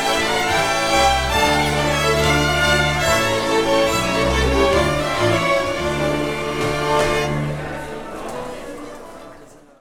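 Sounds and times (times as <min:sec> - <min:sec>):
schottische dance music: 0:00.0 - 0:07.6.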